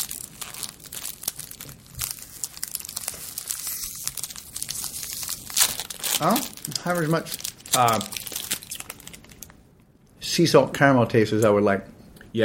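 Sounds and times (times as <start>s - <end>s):
candy wrapper crinkling and being torn open: 0.0s - 9.6s
speech: 6.2s - 8.2s, 10.4s - 11.9s.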